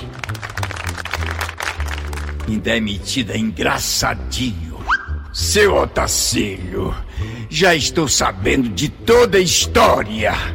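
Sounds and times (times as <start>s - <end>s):
applause: 0.0s - 2.7s
speech: 2.5s - 4.7s, 5.4s - 10.5s.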